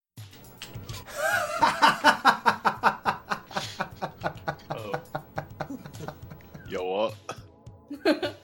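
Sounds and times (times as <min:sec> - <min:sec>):
person laughing: 0:01.0 - 0:06.7, 0:07.9 - 0:08.4.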